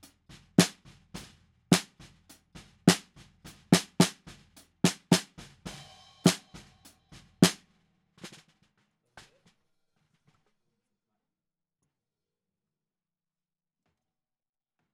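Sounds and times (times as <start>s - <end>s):
snare drum bottom: 0.0s - 8.6s.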